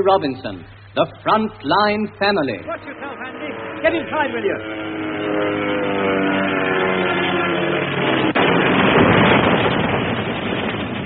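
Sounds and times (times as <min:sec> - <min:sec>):
speech: 0:00.0 - 0:06.2
plane crashing: 0:00.0 - 0:11.0.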